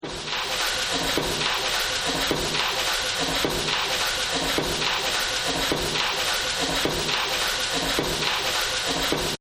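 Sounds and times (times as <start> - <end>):
factory noise: 0.0 - 9.3.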